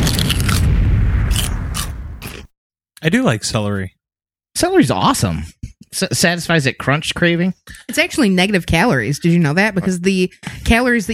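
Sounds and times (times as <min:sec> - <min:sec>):
sonic boom sound effect: 0:00.0 - 0:02.4
speech: 0:03.0 - 0:04.0, 0:04.6 - 0:11.1.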